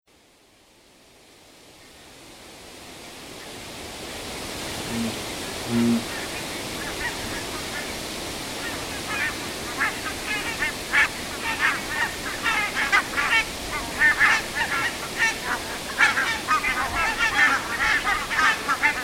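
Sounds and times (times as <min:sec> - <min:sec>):
barnacle geese honking as a flock: 0:04.7 - 0:19.0.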